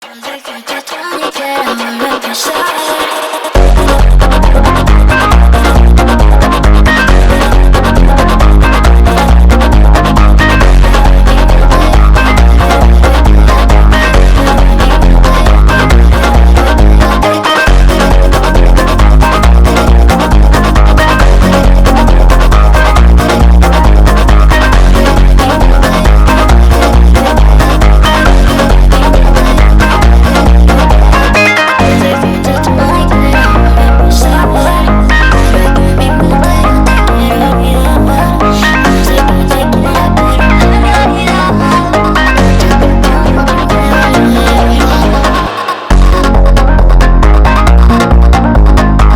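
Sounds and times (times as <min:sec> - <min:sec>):
phonk music: 0:00.0 - 0:49.1.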